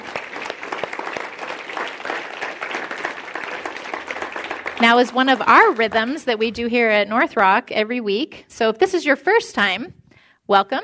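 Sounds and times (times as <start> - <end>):
audience applause: 0.0 - 6.5
speech: 4.8 - 10.8.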